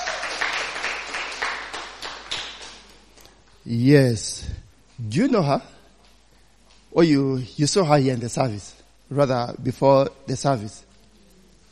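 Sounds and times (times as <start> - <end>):
audience hand clapping: 0.0 - 3.4
speech: 3.7 - 5.8, 6.9 - 10.9.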